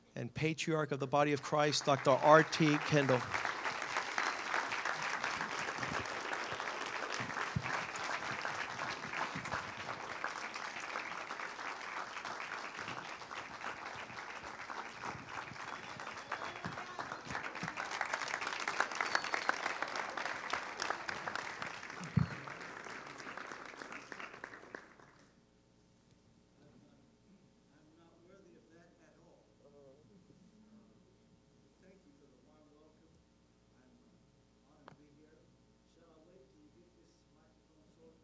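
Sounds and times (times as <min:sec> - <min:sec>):
speech: 0:00.2 - 0:03.6
church congregation applauding a welcomed guest speaker: 0:01.2 - 0:25.4.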